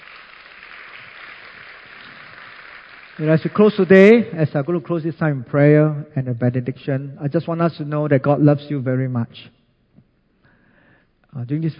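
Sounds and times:
audience clapping: 0.0 - 4.3
speech: 3.2 - 9.6, 11.3 - 11.7.

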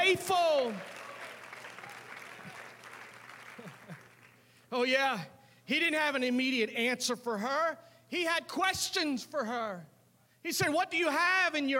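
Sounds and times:
audience clapping hands: 0.0 - 4.6
speech: 0.1 - 1.0, 4.7 - 11.7.

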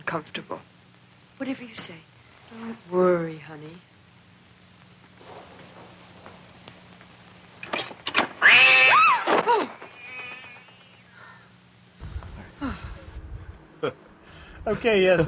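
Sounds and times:
speech: 0.1 - 0.7, 1.4 - 3.9, 14.6 - 15.2
cat yowling: 8.4 - 10.8.

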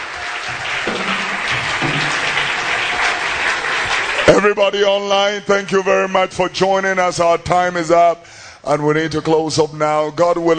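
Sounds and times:
audience clapping hands: 0.0 - 5.0
speech: 4.3 - 10.5.

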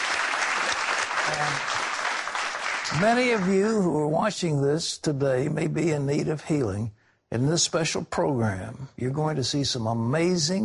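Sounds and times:
studio audience applauding: 0.0 - 4.1
speech: 1.3 - 1.8, 2.8 - 10.6.

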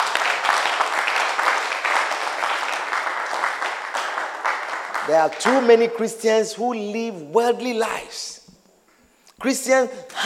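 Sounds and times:
audience clapping hands: 0.0 - 6.0
speech: 5.1 - 8.4, 9.4 - 10.2.

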